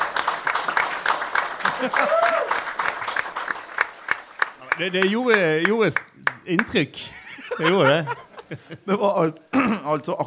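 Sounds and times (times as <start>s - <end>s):
applause: 0.0s - 6.8s
laughter: 1.6s - 2.4s, 7.0s - 9.2s
speech: 1.8s - 2.6s, 4.8s - 10.2s.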